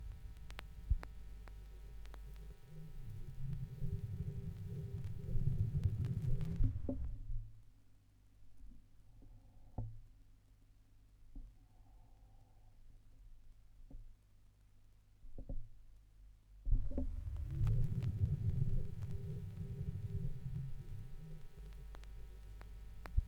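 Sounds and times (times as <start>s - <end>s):
vinyl record noise: 0.0s - 7.3s, 16.8s - 23.2s.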